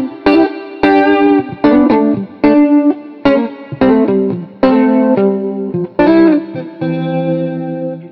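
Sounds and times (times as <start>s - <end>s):
funky jazz street guitar on a Telecaster: 0.0s - 8.0s.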